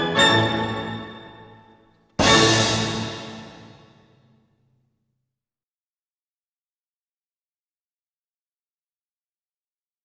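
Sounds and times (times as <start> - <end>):
ballet music for a girls soloist variation: 0.0 - 1.6, 2.2 - 4.0.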